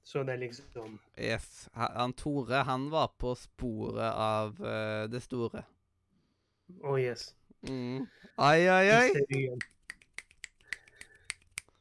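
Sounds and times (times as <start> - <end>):
speech: 0.1 - 5.8, 6.7 - 9.7
finger snapping: 9.3 - 11.7.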